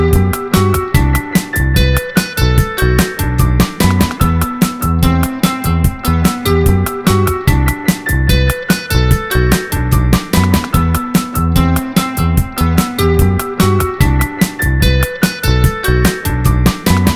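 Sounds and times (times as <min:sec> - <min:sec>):
E minor chord loop: 0:00.0 - 0:17.1.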